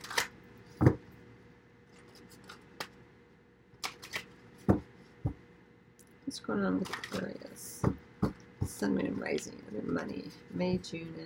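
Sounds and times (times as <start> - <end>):
oracle money deck cards shuffled and drawn: 0.0 - 0.9, 1.9 - 3.0, 3.8 - 4.4
speech: 6.4 - 8.0, 8.8 - 11.2.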